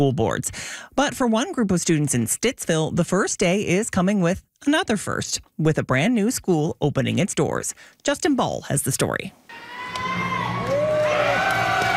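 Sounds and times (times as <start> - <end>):
speech: 0.0 - 10.4
children whooping and shouting: 9.5 - 11.9
crowd cheering at a school ribbon-cutting ceremony: 9.5 - 11.9.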